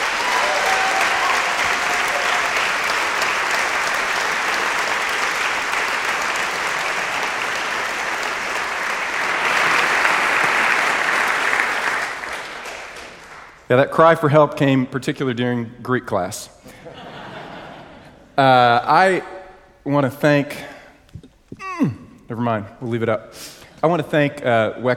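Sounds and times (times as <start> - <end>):
audience applause welcoming a guest speaker at a seminary chapel: 0.0 - 13.6
speech: 13.7 - 16.6, 18.4 - 19.3, 19.9 - 20.7, 22.3 - 24.9
laughter: 16.7 - 18.2.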